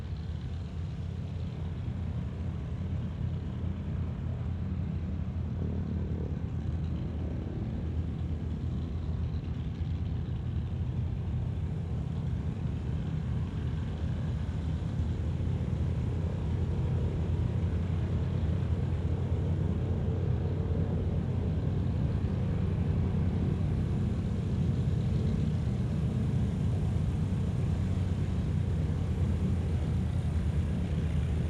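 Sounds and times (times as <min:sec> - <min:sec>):
Trojan aircraft squadron taxiing and shutting down: 0:00.0 - 0:31.4.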